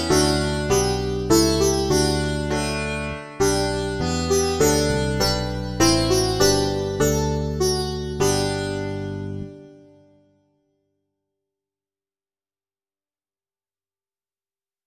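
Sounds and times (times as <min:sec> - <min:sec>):
banjo: 0:00.0 - 0:09.8
sitar: 0:00.0 - 0:10.6.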